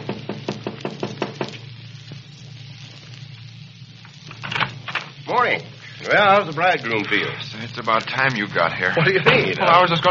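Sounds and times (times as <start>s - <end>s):
sharp hollow raps on a door: 0.0s - 1.5s
speech: 5.3s - 10.1s.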